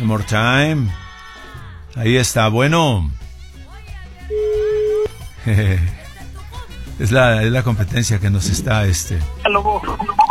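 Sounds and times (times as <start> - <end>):
speech: 0.0 - 1.0, 2.0 - 3.2, 5.4 - 6.0, 7.0 - 10.2
telephone ringing: 4.3 - 5.1.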